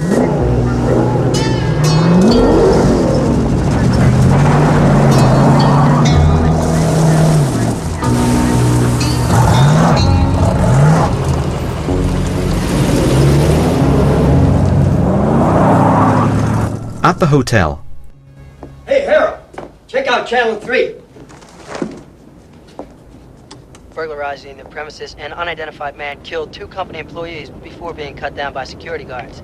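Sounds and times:
car engine revving as the vehicle drives away from a crime scene: 0:00.0 - 0:18.2
speech: 0:17.2 - 0:17.8, 0:20.1 - 0:21.0, 0:24.0 - 0:29.4.

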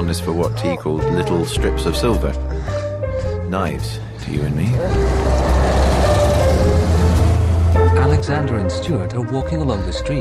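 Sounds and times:
speech: 0:00.0 - 0:02.8, 0:03.5 - 0:05.5, 0:07.9 - 0:10.1
street traffic beside a bus station: 0:04.7 - 0:08.4.

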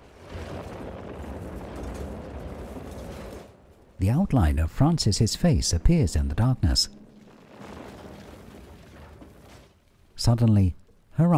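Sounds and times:
bomb blast striking a house: 0:00.0 - 0:09.7
speech: 0:04.0 - 0:07.0, 0:10.3 - 0:11.3.

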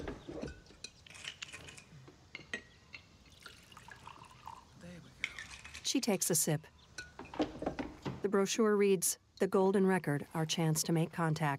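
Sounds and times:
liquor poured from bottle into glass: 0:03.3 - 0:04.7
speech: 0:05.9 - 0:06.8, 0:08.3 - 0:11.5.

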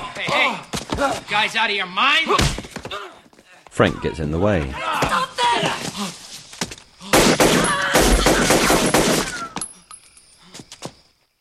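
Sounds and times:
speech: 0:00.3 - 0:03.0, 0:03.8 - 0:06.2
gunshots fired into the air: 0:07.1 - 0:09.4.

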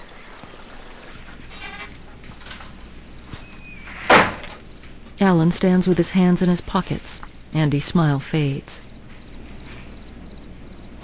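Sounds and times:
office door opening thunk: 0:03.9 - 0:04.6
speech: 0:05.2 - 0:08.9.

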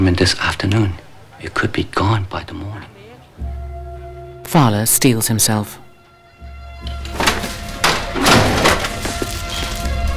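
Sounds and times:
speech: 0:00.0 - 0:03.5, 0:04.5 - 0:05.8
heavy doors forced open: 0:06.9 - 0:09.6.

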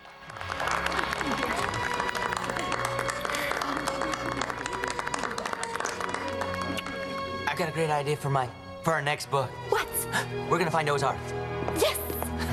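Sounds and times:
museum visitors applauding: 0:00.0 - 0:07.5
speech: 0:07.6 - 0:12.0.

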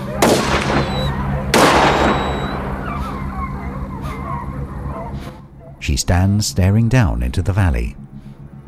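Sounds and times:
gunshots: 0:00.2 - 0:03.6
speech: 0:05.8 - 0:08.1.

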